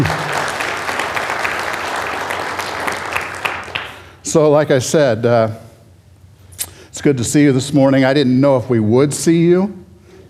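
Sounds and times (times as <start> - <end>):
audience hand clapping applause: 0.0 - 4.2
speech: 4.3 - 5.6, 7.0 - 10.2.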